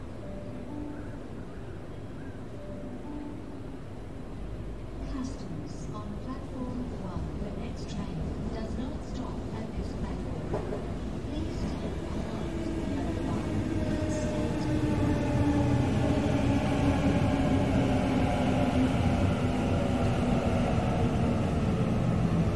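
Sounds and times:
Sydney train rumble heard from a station platform: 3.0s - 22.5s
faint voices on a station platform: 5.2s - 15.4s.

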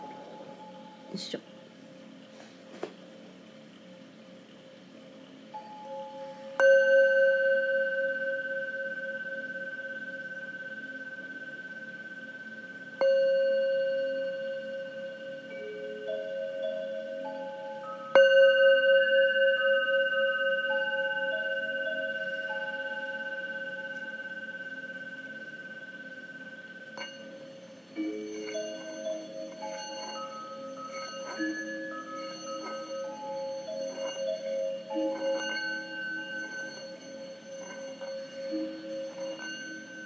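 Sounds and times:
singing bowl being struck: 0.0s - 1.4s, 5.5s - 40.0s
speech: 1.1s - 1.6s.

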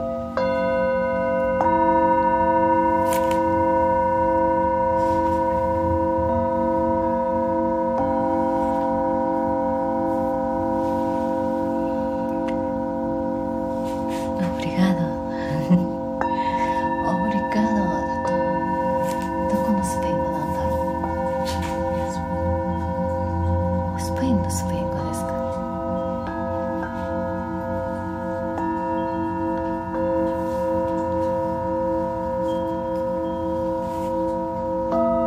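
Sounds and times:
singing bowls ringing in a layered drone: 0.0s - 35.2s
soft wavering sounds: 0.0s - 35.2s.

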